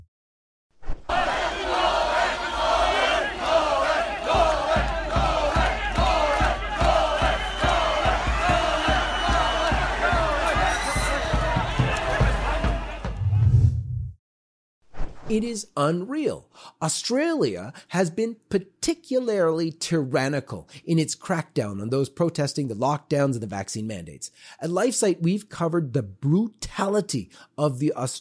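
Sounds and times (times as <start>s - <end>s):
protest crowd shouting and chanting: 1.1s - 13.2s
speech: 15.3s - 28.1s.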